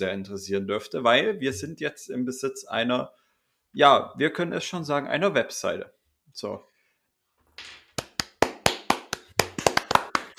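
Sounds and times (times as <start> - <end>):
speech: 0.0 - 6.7
hand clapping: 7.6 - 10.3.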